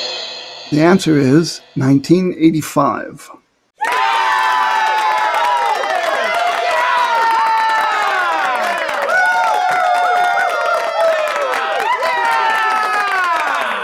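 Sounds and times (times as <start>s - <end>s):
speech: 0.7s - 3.4s
applause sound effect: 3.8s - 13.8s.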